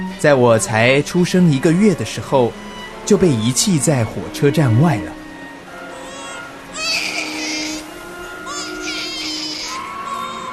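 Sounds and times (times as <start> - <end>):
speech: 0.0 - 5.2
baby crying: 5.8 - 10.5.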